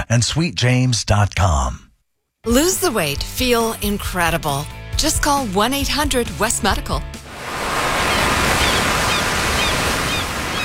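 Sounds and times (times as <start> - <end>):
speech: 0.1 - 1.8, 2.4 - 7.2
ocean surf breaking along the California coastline: 7.1 - 10.6.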